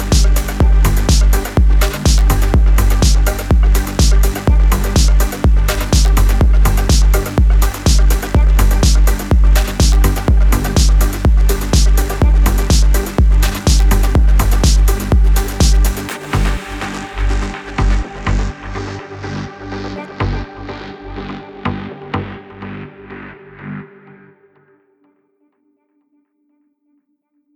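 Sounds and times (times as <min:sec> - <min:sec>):
atmospheric tech music: 0:00.0 - 0:25.0.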